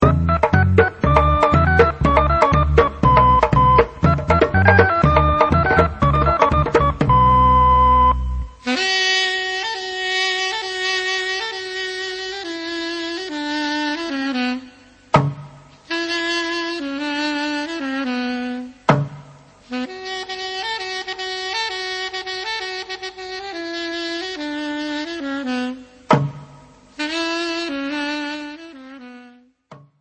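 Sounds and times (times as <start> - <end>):
instrumental music: 0.0 - 29.9.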